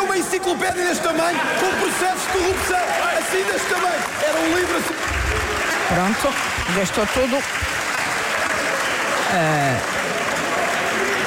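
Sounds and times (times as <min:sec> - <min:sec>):
parliament deputies applauding: 0:00.0 - 0:11.2
speech: 0:00.3 - 0:07.8, 0:09.3 - 0:10.2.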